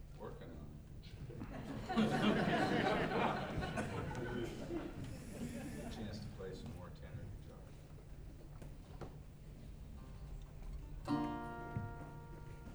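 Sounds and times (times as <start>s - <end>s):
laughter: 1.0s - 6.6s
mandolin solo: 10.9s - 12.7s.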